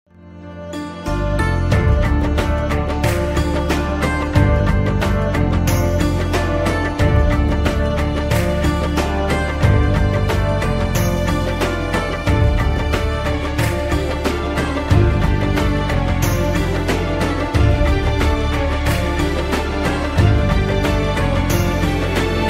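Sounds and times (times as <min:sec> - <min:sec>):
bhangra music mix: 0:00.1 - 0:22.4.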